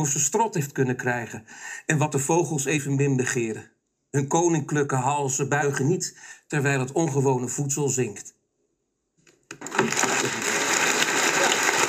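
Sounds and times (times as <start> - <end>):
speech: 0.0 - 8.4
audience applause: 9.6 - 11.8.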